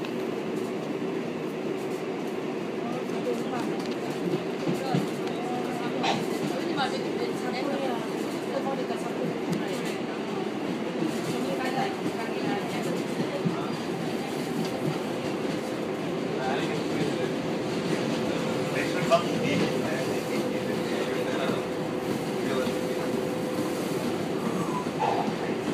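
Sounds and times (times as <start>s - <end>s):
subway: 0.0s - 25.7s.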